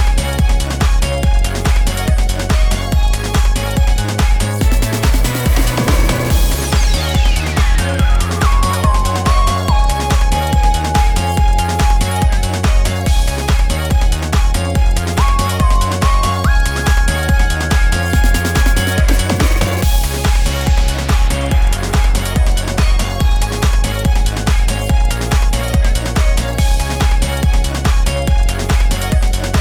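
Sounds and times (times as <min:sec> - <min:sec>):
background music for a result screen: 0:00.0 - 0:29.6.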